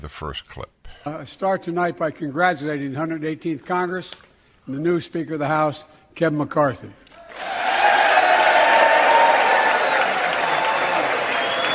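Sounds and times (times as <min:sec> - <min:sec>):
speech: 0:00.0 - 0:07.6
Republican legislators applauding: 0:07.2 - 0:11.7.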